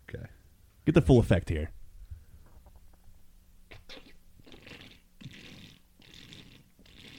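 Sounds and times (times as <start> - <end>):
faint low hum: 0.0 - 7.1
speech: 0.9 - 1.8
person slurping a drink: 3.9 - 7.1.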